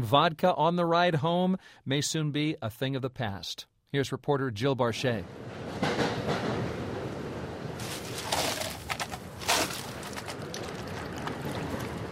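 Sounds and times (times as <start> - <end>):
speech: 0.0 - 6.1
commuter train interior rumble: 5.2 - 12.1.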